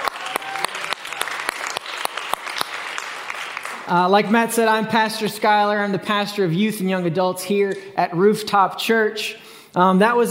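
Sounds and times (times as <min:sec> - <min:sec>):
audience hand clapping: 0:00.0 - 0:04.4
speech: 0:03.9 - 0:10.2.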